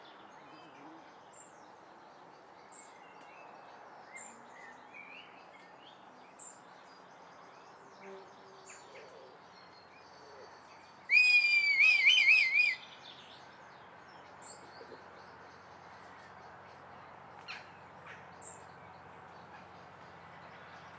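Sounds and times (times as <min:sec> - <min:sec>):
red kite giving a wavering tremulous whistle: 0:11.1 - 0:12.8.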